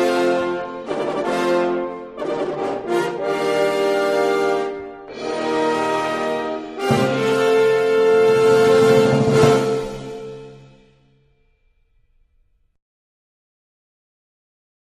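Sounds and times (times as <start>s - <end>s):
Vienna horns: 0.0s - 11.3s.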